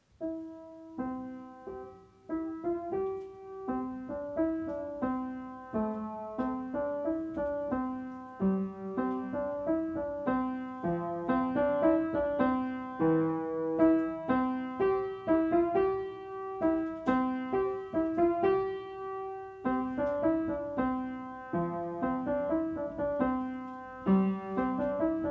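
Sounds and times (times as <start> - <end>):
piano: 0.0 - 25.2.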